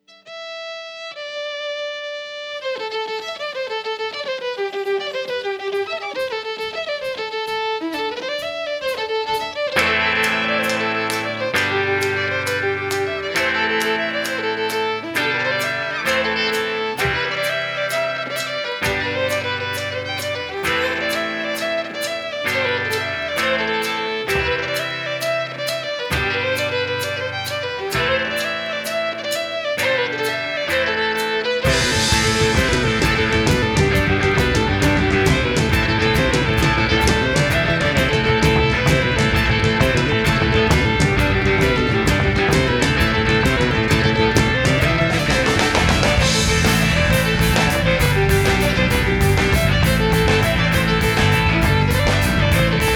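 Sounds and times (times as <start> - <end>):
march music: 0.0 - 52.9.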